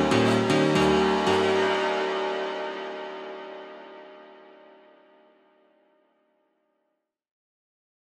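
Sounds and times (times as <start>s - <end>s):
slowed funk music: 0.0s - 2.9s.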